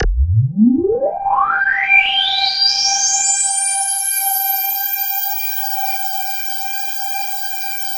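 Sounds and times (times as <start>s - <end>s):
KORG DW8000 vintage synthesizer keyboard: 0.0s - 2.7s.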